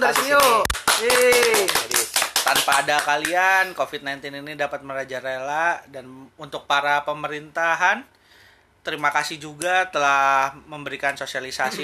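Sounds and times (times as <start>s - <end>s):
speech: 0.0s - 1.8s, 2.5s - 8.2s, 8.8s - 11.8s
hand clapping: 0.0s - 3.7s.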